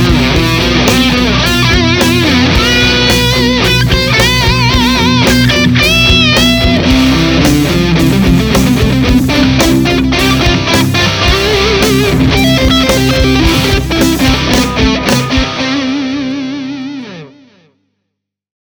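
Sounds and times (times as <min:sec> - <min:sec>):
C scale played over chords in the key of C: 0:00.0 - 0:17.6.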